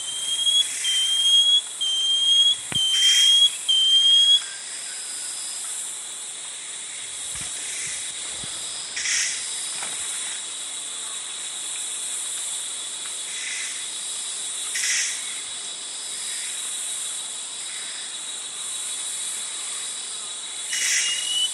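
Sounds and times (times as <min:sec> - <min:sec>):
Banded Antbird whistled call: 0:00.0 - 0:04.5, 0:20.7 - 0:21.5.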